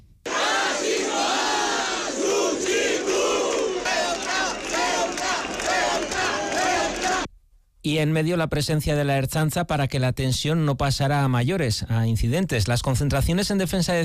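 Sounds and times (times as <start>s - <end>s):
protest crowd shouting and chanting: 0.3s - 7.3s
speech: 7.8s - 14.0s.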